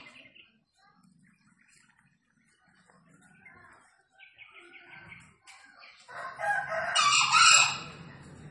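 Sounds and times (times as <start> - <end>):
green junglefowl crowing: 6.2 - 8.0.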